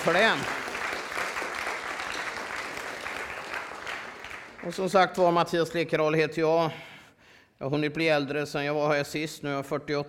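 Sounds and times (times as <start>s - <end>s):
speech: 0.0s - 0.6s, 4.6s - 6.9s, 7.6s - 10.0s
audience applause: 0.0s - 5.0s.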